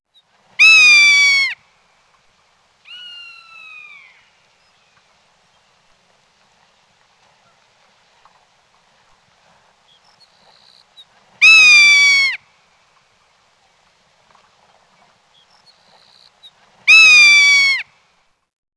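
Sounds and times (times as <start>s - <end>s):
rough-legged hawk screaming: 0.6s - 1.6s, 11.4s - 12.4s, 16.9s - 17.8s.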